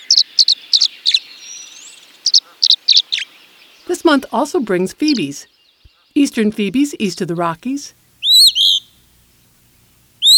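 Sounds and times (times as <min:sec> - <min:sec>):
tree swallow singing: 0:00.0 - 0:04.1, 0:05.0 - 0:06.5, 0:07.1 - 0:09.2, 0:10.2 - 0:10.3
speech: 0:03.9 - 0:05.6, 0:06.2 - 0:08.0
soft thin whistle: 0:08.2 - 0:08.9, 0:10.2 - 0:10.3.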